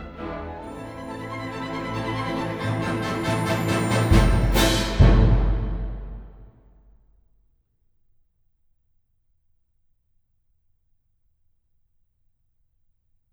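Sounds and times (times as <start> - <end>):
orchestra playing a galop: 0.0 - 6.5.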